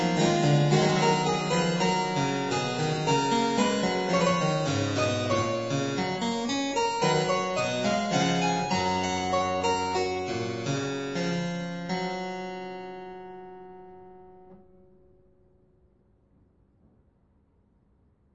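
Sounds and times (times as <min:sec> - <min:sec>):
two-manual harpsichord piece: 0:00.0 - 0:14.6.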